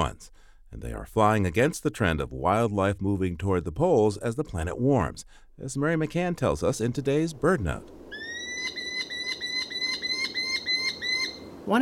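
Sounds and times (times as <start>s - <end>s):
speech: 0.0s - 8.2s, 11.7s - 11.8s
Merlin chattering: 8.1s - 11.8s.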